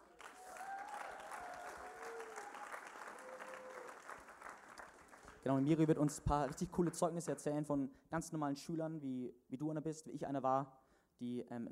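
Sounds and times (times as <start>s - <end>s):
audience applause: 0.0s - 5.4s
speech: 5.4s - 11.6s.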